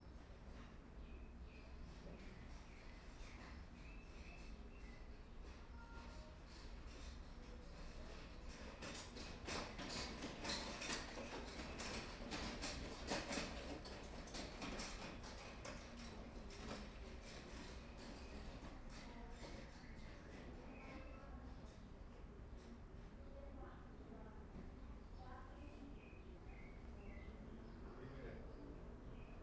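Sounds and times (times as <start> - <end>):
few people: 0.0 - 29.4
birds: 0.1 - 5.6, 24.8 - 29.4
noisy rolling suitcase passing through a room: 5.4 - 21.8.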